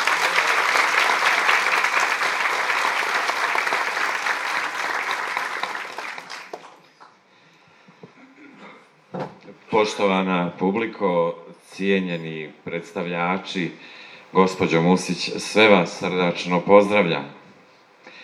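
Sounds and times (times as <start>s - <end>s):
audience applause at a church monograph presentation evening: 0.0s - 6.8s
speech: 9.8s - 17.4s.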